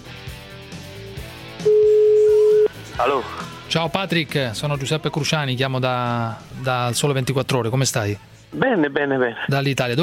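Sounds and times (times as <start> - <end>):
telephone ringing tone on an unanswered call: 1.6 - 2.7
speech: 3.0 - 10.0.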